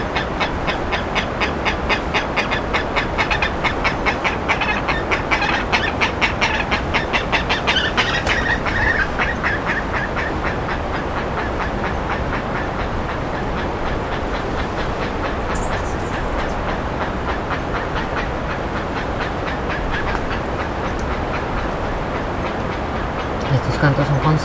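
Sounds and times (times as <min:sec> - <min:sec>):
rasping bird calls: 0:00.0 - 0:24.4.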